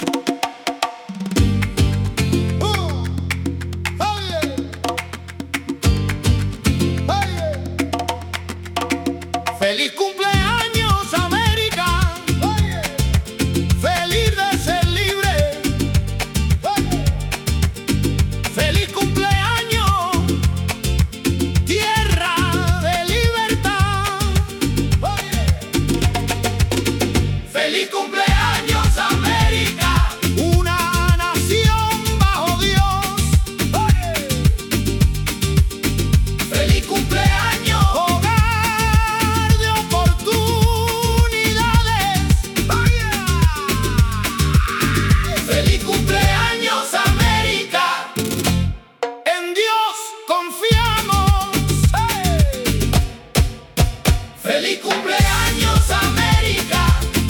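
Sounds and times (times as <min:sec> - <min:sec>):
rumba music: 0:00.0 - 0:49.6, 0:50.6 - 0:57.2.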